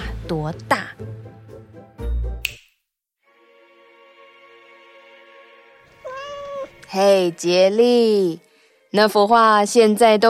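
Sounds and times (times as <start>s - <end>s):
speech: 0.3s - 1.3s, 6.9s - 10.2s
sharp snap: 2.4s - 2.8s
cat meowing: 6.0s - 6.8s.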